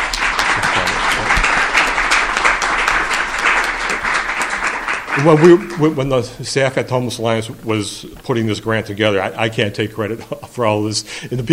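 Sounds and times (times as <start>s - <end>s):
audience applause: 0.0s - 6.3s
speech: 5.2s - 11.5s.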